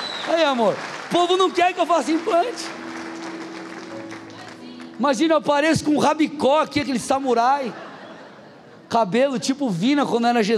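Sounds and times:
applause: 0.0 - 5.4
speech: 0.3 - 2.8, 5.0 - 7.9, 8.9 - 10.5
laughter: 7.4 - 8.9.

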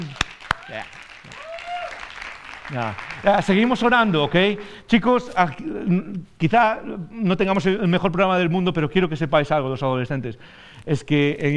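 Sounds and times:
speech: 0.0 - 1.5, 2.7 - 11.5
audience applause: 0.0 - 4.6.

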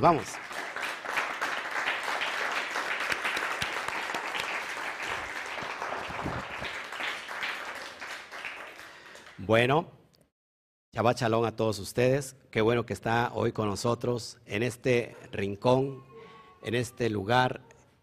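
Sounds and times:
speech: 0.0 - 0.4, 9.5 - 10.0, 11.0 - 17.7
audience applause: 0.0 - 9.4.

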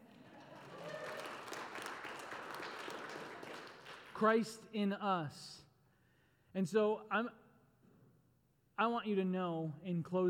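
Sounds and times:
crowd applause: 0.0 - 4.2
speech: 4.2 - 5.6, 6.6 - 7.4, 8.8 - 10.2.

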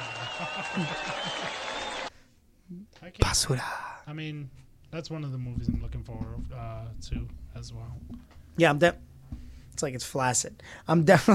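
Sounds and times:
audience clapping: 0.0 - 2.1
laughter: 0.0 - 2.1
speech: 0.5 - 1.7, 2.7 - 11.3.

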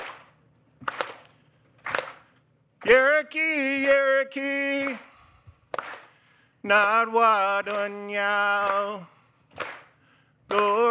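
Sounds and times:
slow hard hand claps: 0.0 - 2.3, 5.7 - 6.2, 7.6 - 8.0, 8.6 - 10.8
speech: 2.8 - 5.1, 6.6 - 9.7, 10.5 - 10.8.

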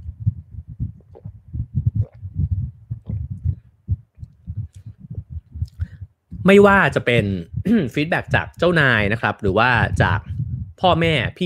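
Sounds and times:
speaker sipping a drink of water: 0.8 - 6.0
speech: 6.4 - 11.4.

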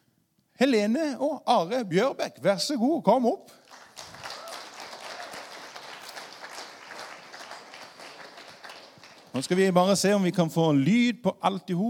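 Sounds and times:
speech: 0.6 - 3.6, 9.4 - 11.8
audience applause: 3.7 - 9.8.

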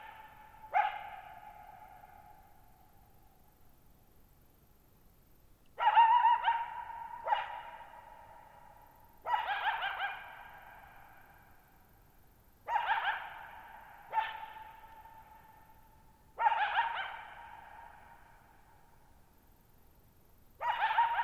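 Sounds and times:
coyote yipping and howling: 0.0 - 2.5, 5.8 - 11.2, 12.7 - 15.7, 16.4 - 18.3, 20.6 - 21.2.

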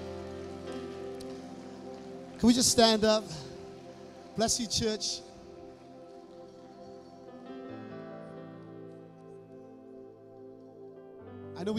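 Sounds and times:
church audience applause: 0.0 - 6.4
speech: 2.4 - 3.5, 4.4 - 5.3.

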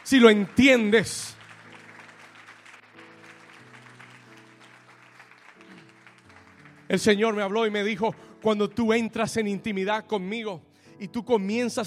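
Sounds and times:
audience applause: 0.0 - 9.0
speech: 0.1 - 1.4, 6.9 - 11.8.

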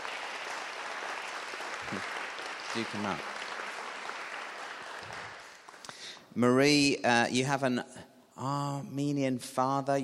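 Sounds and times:
audience applause: 0.0 - 5.9
speech: 1.9 - 2.2, 2.8 - 3.4, 6.3 - 10.0.

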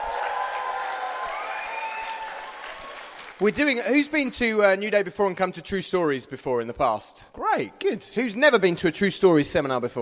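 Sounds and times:
audience round of applause: 0.0 - 4.0
speech: 3.4 - 9.9.

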